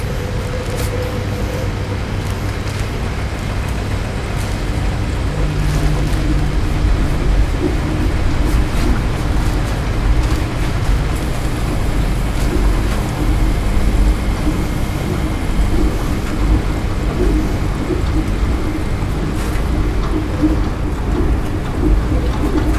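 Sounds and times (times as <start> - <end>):
laundromat machines running: 0.0 - 22.7.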